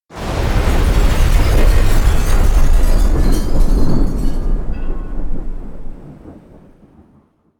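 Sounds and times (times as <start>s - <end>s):
building collapsing: 0.1s - 7.0s.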